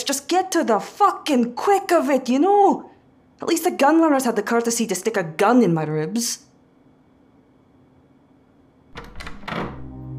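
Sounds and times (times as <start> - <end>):
speech: 0.0 - 6.5
doors swinging open with a push: 9.0 - 10.1.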